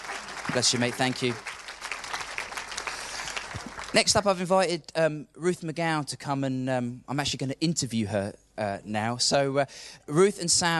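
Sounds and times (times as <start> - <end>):
audience applause: 0.0 - 4.2
speech: 0.5 - 1.5, 3.9 - 10.7.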